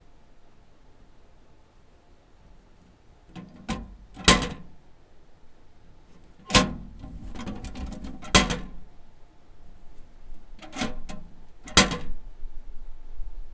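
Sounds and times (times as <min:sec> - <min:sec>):
mailbox: 0:03.2 - 0:04.8, 0:06.0 - 0:09.0, 0:09.8 - 0:12.2.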